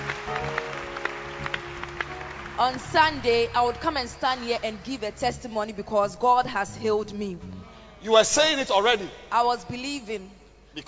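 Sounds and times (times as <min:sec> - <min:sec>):
audience clapping hands: 0:00.0 - 0:05.8
steady droning hum: 0:02.6 - 0:10.6
speech: 0:02.6 - 0:10.8.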